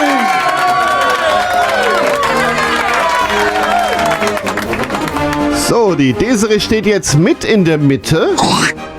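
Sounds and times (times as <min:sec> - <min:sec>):
audience applause: 0:00.0 - 0:05.6
speech: 0:05.7 - 0:08.8.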